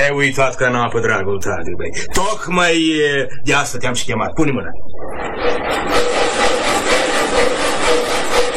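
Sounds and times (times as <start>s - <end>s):
speech: 0.0s - 6.0s
bucksaw sawing wood back and forth: 5.4s - 8.5s.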